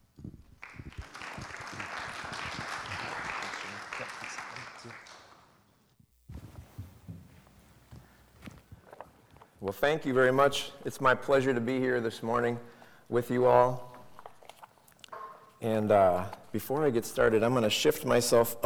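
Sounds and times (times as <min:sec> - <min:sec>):
church audience applause welcoming a speaker to the pulpit: 0:00.6 - 0:05.5
speech: 0:09.7 - 0:13.9, 0:15.6 - 0:18.6.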